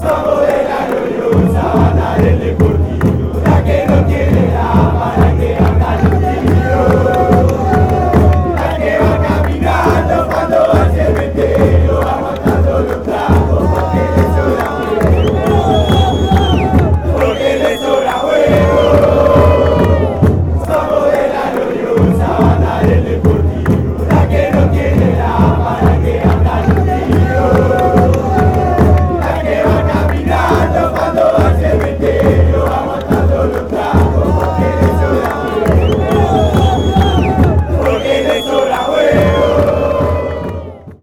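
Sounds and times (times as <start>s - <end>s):
Argentine fans chanting: 0.0s - 41.0s.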